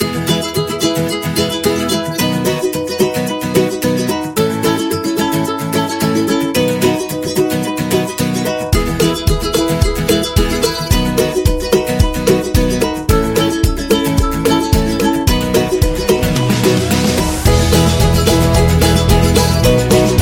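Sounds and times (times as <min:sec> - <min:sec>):
happy opener music: 0:00.0 - 0:20.2.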